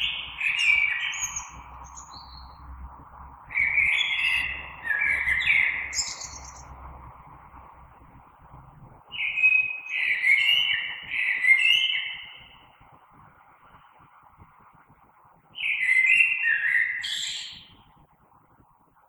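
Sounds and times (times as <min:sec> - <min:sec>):
common blackbird singing: 0:00.0 - 0:02.7, 0:03.5 - 0:06.7, 0:09.1 - 0:12.6, 0:15.6 - 0:17.8.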